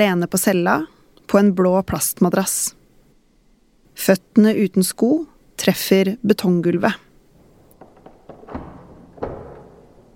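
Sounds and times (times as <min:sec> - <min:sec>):
speech: 0:00.0 - 0:02.8, 0:04.0 - 0:07.0
heavy cell door bolt clunking: 0:07.3 - 0:10.1
cell door lock clicking: 0:07.4 - 0:10.1.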